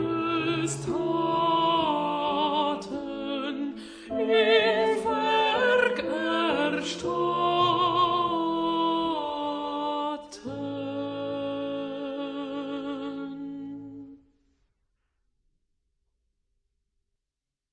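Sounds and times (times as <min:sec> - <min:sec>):
alto singing: 0:00.0 - 0:14.2.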